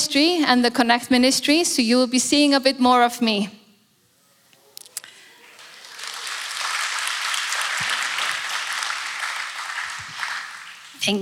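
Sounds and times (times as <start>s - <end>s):
speech: 0.1s - 3.6s, 11.1s - 11.2s
crowd applauding: 5.0s - 11.2s.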